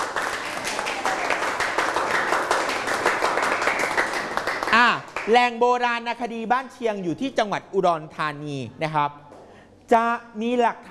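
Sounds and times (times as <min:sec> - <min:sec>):
classroom applause for a classmate: 0:00.0 - 0:05.4
speech: 0:04.8 - 0:09.2, 0:09.9 - 0:10.8.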